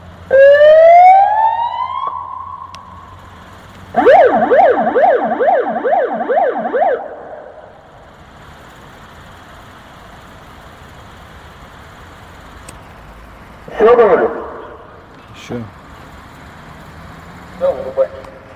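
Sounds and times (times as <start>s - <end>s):
siren: 0.3s - 3.3s, 3.9s - 7.9s.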